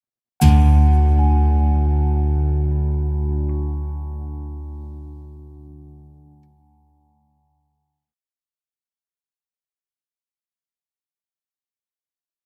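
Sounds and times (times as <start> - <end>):
ident jingle: 0.4 - 6.4.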